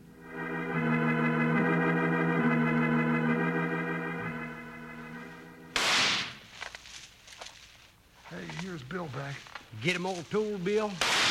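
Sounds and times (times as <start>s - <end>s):
sustained musical chord: 0.0s - 5.8s
scattered crackles: 5.2s - 11.2s
gunshot in a radio western shootout: 5.7s - 6.4s, 11.0s - 11.2s
speech: 8.9s - 11.2s.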